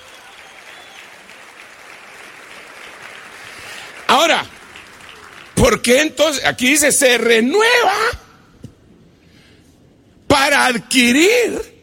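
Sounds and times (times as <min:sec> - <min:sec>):
crowd applauding: 0:00.0 - 0:06.3
speech: 0:05.6 - 0:08.2, 0:10.6 - 0:11.7.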